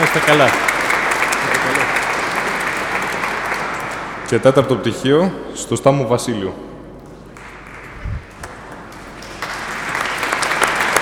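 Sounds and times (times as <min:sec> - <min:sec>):
audience applause at a degree presentation ceremony: 0:00.0 - 0:04.3, 0:07.4 - 0:10.9
speech: 0:00.2 - 0:00.6, 0:04.3 - 0:06.7.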